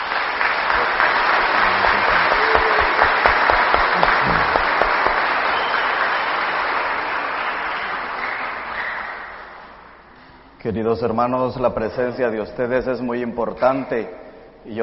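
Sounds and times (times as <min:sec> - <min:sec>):
audience applauding: 0:00.0 - 0:09.8
speech: 0:10.7 - 0:14.8.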